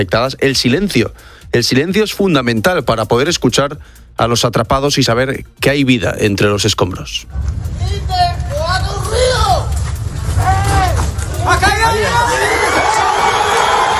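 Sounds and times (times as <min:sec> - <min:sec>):
speech: 0:00.0 - 0:08.8
low rumble: 0:07.2 - 0:12.3
excited crowd cheering and shouting at rubble rescue: 0:07.9 - 0:13.9.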